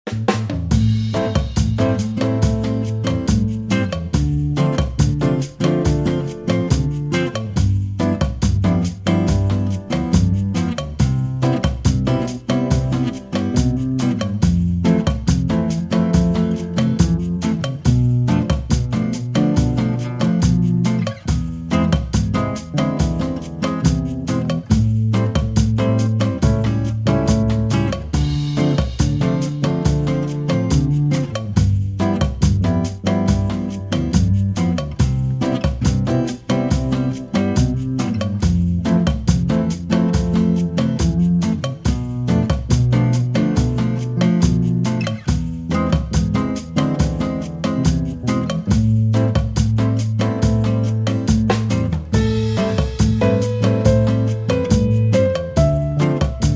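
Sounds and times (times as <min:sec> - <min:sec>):
bossa nova music: 0:00.1 - 0:56.5.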